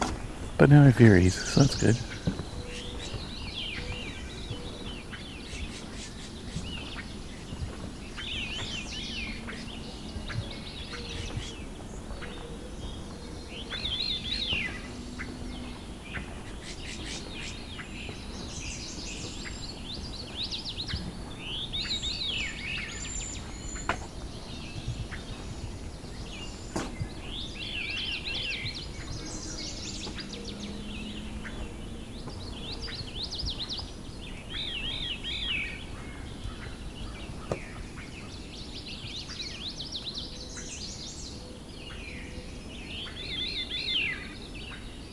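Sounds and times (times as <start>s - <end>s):
black-and-white warbler song: 0.0s - 45.1s
speech: 0.6s - 2.4s.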